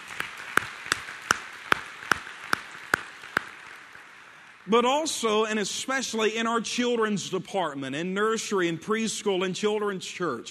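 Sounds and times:
round of applause from audience: 0.0s - 4.7s
speech: 4.7s - 10.4s.

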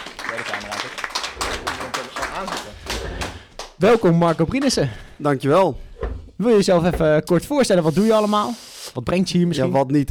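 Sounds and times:
small round of applause welcoming a guest onto a Dutch talk show: 0.0s - 4.8s
speech: 0.3s - 3.2s, 3.8s - 10.0s.

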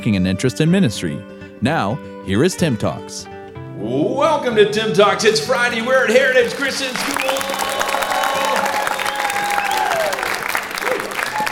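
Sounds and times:
speech: 0.0s - 7.5s
crowd applauding: 6.6s - 11.5s
whistles: 7.0s - 11.5s.

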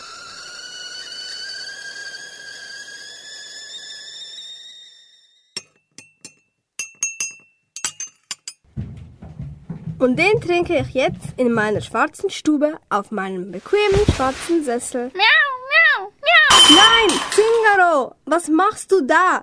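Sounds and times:
steady high whistling tone: 0.0s - 5.6s, 16.5s - 17.6s
speech: 10.0s - 15.4s, 17.0s - 19.4s
cup and glass clinking: 16.5s - 17.6s.

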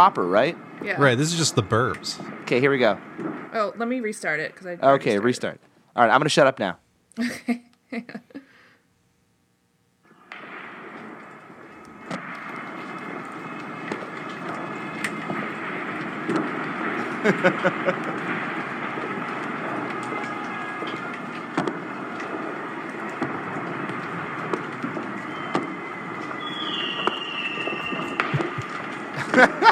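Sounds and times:
fireworks at a street celebration: 0.0s - 5.4s, 10.0s - 29.6s
speech: 0.0s - 8.4s, 17.2s - 18.1s, 29.4s - 29.6s
laughter: 7.2s - 8.5s, 17.0s - 18.5s, 28.1s - 29.6s
gunshots at a street celebration: 10.2s - 29.6s.

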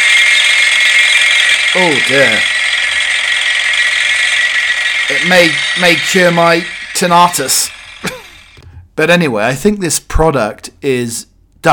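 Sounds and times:
vibrating massager device buzzing: 0.0s - 8.6s
speech: 1.8s - 2.6s, 5.1s - 7.8s, 9.0s - 11.7s.

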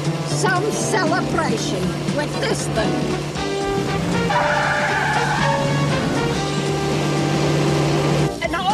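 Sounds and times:
car engine: 0.0s - 8.6s
speech: 0.4s - 4.8s
car tires squealing during a chase in the film Toxic Avenger II: 2.2s - 8.3s.

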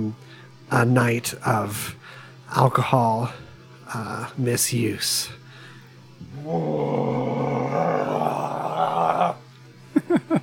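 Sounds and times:
speech: 0.0s - 5.4s, 6.4s - 7.2s
loud burp: 6.3s - 9.4s
laughter: 9.9s - 10.4s.

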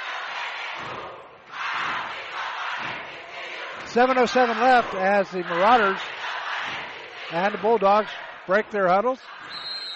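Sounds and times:
basketball crowd cheering: 0.0s - 0.8s, 1.5s - 9.9s
speech: 3.9s - 9.4s.

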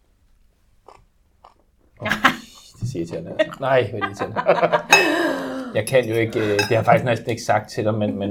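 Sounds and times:
chewing plain seaweed salad: 0.8s - 2.0s
laughter: 2.0s - 7.2s, 7.9s - 8.2s
speech: 2.9s - 8.2s.

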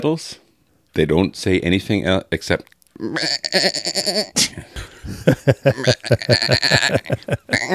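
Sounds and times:
speech: 0.0s - 0.4s, 1.0s - 7.7s
person bleating like a goat: 3.0s - 4.5s, 5.7s - 7.7s
laughter: 4.4s - 7.7s.

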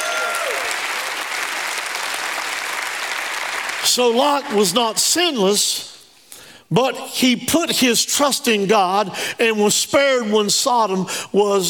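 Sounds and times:
audience hand clapping: 0.0s - 4.5s
speech: 3.8s - 5.9s, 6.7s - 11.6s.

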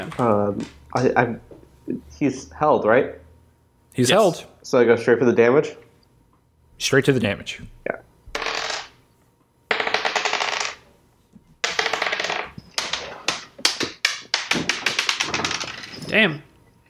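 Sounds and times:
speech: 0.0s - 3.2s, 4.0s - 5.8s, 6.8s - 8.0s, 16.2s - 16.5s
plastic dice rolled in a tabletop role-playing game: 8.3s - 9.0s, 9.7s - 10.8s, 11.6s - 16.1s.

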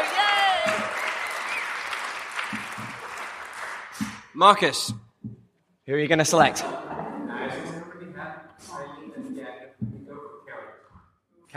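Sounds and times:
quiz show audience applause: 0.0s - 4.4s
speech: 4.4s - 5.0s, 5.9s - 6.8s.

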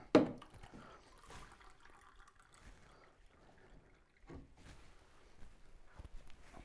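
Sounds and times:
water poured into a drinking glass: 0.2s - 4.8s.

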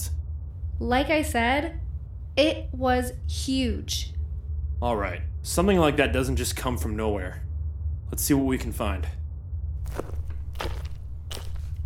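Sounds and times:
steady low rumbling hum: 0.0s - 11.8s
speech: 0.8s - 1.8s, 2.4s - 4.1s, 4.8s - 7.4s, 8.1s - 9.2s, 9.9s - 10.8s
footsteps of two people walking down a sloping tunnel floor: 9.8s - 11.8s.

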